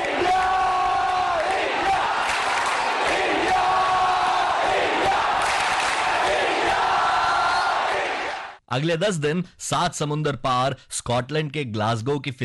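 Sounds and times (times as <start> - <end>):
crowd chanting: 0.0 - 8.6
speech: 8.7 - 12.4.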